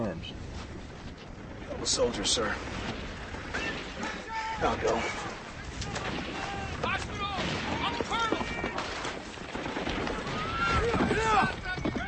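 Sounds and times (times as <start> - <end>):
speech: 0.2 - 0.6, 1.8 - 3.0, 4.6 - 5.3
people shouting: 3.5 - 9.2, 10.0 - 12.0
gunfire-like bursts: 5.9 - 12.0
horse galloping with rider: 8.0 - 12.0.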